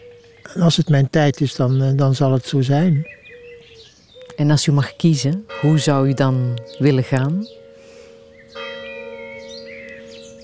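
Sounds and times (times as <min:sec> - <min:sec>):
birds chirping: 0:00.0 - 0:10.4
speech: 0:00.4 - 0:03.2, 0:04.4 - 0:07.6
church bell striking: 0:05.4 - 0:10.4.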